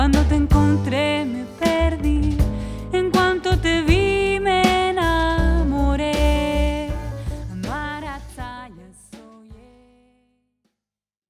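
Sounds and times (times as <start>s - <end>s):
Latin cafe music: 0.0s - 9.0s.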